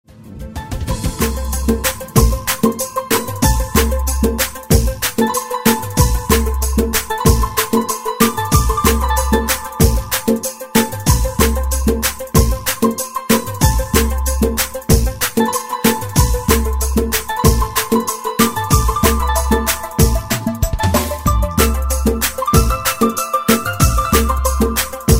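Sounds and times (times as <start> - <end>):
rai music: 0.1 - 25.1.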